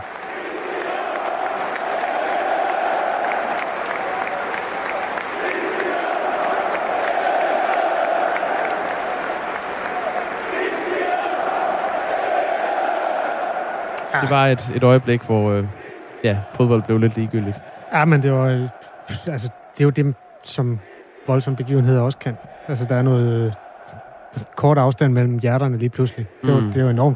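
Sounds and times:
football fans chanting back and forth: 0:00.0 - 0:24.6
speech: 0:14.2 - 0:23.6, 0:24.6 - 0:27.1.

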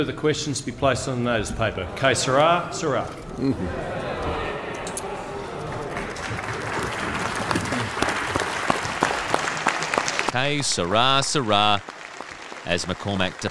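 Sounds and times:
speech: 0:00.0 - 0:04.4, 0:10.3 - 0:12.0, 0:12.6 - 0:13.4
faint murmur of voices: 0:01.4 - 0:08.2
standing ovation applause from a large crowd in parliament: 0:05.4 - 0:13.4.

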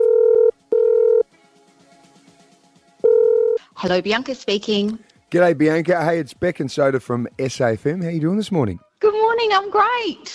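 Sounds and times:
telephone dialing tones: 0:00.0 - 0:01.2
speech: 0:03.8 - 0:08.8, 0:09.4 - 0:10.3.

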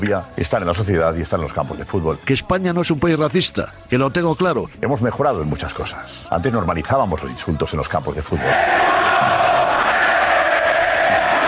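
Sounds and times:
speech: 0:00.0 - 0:09.4
stadium crowd chanting: 0:08.4 - 0:11.4.

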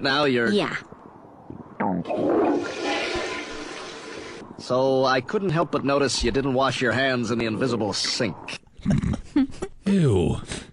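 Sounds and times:
speech: 0:00.0 - 0:00.9, 0:02.0 - 0:02.8, 0:04.6 - 0:09.0, 0:09.9 - 0:10.7
toilet flushing: 0:02.1 - 0:04.4.

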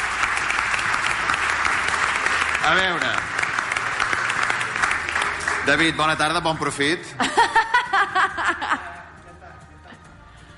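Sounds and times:
applause for the winner of the Valls calçots contest: 0:00.0 - 0:07.0
speech: 0:02.6 - 0:03.3, 0:05.7 - 0:07.6
laughter: 0:07.1 - 0:10.2.

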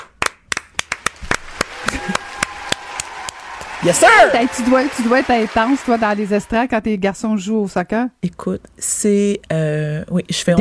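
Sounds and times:
loud audience applause: 0:00.2 - 0:06.7
speech: 0:03.8 - 0:10.6.

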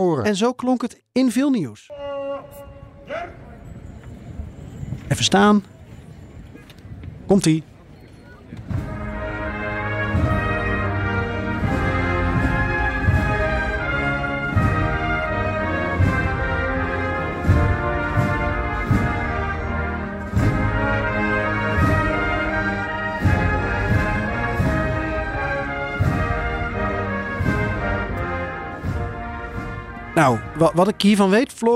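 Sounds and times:
speech: 0:00.0 - 0:02.0, 0:05.1 - 0:05.7, 0:07.3 - 0:07.7, 0:30.2 - 0:31.7
instrumental anthem without lyrics: 0:08.7 - 0:31.7.

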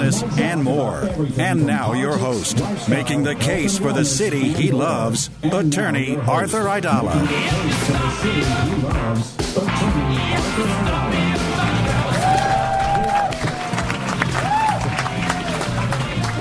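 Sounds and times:
speech: 0:00.1 - 0:11.6
crowd applause and cheering: 0:10.4 - 0:16.4.

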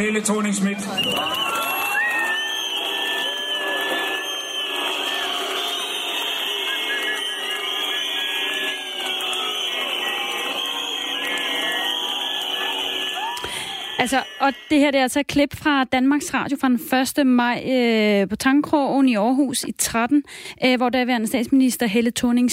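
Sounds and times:
speech: 0:00.0 - 0:01.6, 0:14.0 - 0:22.5
crowd whistling and jeering: 0:00.1 - 0:15.0
light applause: 0:01.0 - 0:14.7.

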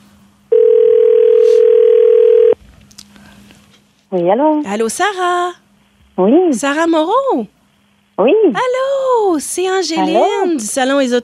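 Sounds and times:
telephone ringing tone on the line while a call connects: 0:00.5 - 0:02.6
speech: 0:04.1 - 0:05.6, 0:06.2 - 0:07.6, 0:08.2 - 0:11.2.

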